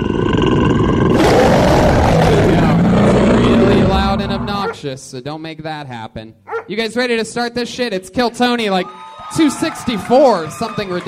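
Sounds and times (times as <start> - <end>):
angry bear roar sound effect: 0.0 - 4.8
speech: 4.8 - 11.0.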